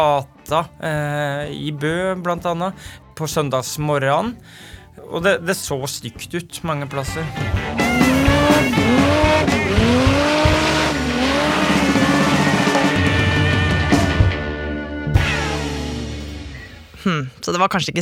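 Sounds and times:
speech: 0.0s - 8.0s, 17.0s - 18.0s
car engine roaring: 7.4s - 16.9s
car doing a burnout with tires squealing: 7.6s - 13.7s.

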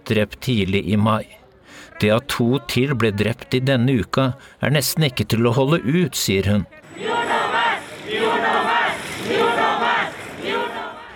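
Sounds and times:
speech: 0.1s - 1.4s, 2.0s - 7.1s
protest crowd chanting slogan: 6.7s - 11.1s.

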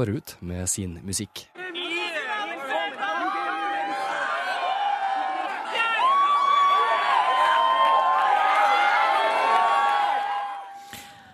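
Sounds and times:
speech: 0.0s - 1.6s
excited chatter: 1.5s - 9.7s
young concert crowd cheering and shouting: 1.5s - 11.0s.

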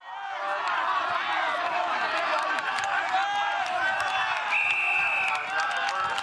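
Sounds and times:
large crowd roaring and chattering: 0.0s - 6.2s
referee whistle blast: 4.5s - 5.4s.

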